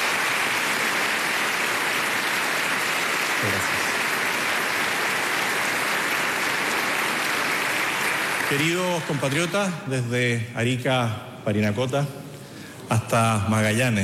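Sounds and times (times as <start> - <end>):
audience applause: 0.0 - 10.2
speech: 3.4 - 3.9, 8.5 - 12.2, 12.9 - 14.0.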